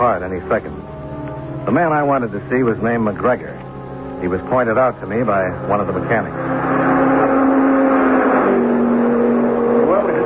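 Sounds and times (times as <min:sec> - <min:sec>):
speech: 0:00.0 - 0:00.9, 0:01.6 - 0:03.6, 0:04.2 - 0:06.9
race cars roaring past on a test track: 0:03.8 - 0:10.2.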